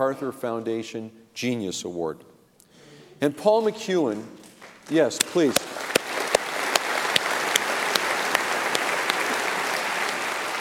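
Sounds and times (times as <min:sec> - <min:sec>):
speech: 0:00.0 - 0:02.4, 0:03.2 - 0:05.7
audience applause: 0:04.9 - 0:10.5.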